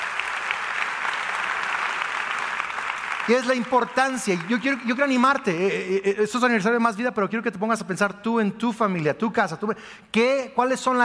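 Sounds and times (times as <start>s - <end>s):
church audience clapping: 0.0s - 6.0s
speech: 3.3s - 11.0s.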